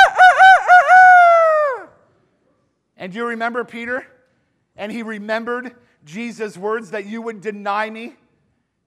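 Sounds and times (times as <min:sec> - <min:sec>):
rooster crowing: 0:00.0 - 0:02.0
speech: 0:03.1 - 0:04.1, 0:04.8 - 0:08.2.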